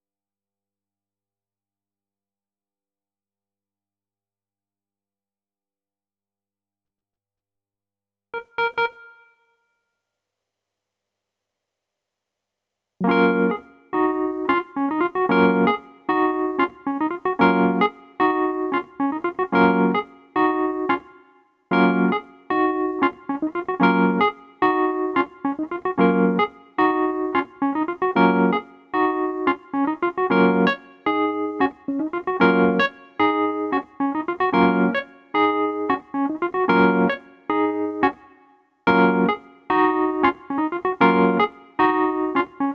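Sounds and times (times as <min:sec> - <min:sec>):
keyboard playing: 0:08.4 - 0:09.3, 0:13.0 - 0:42.7.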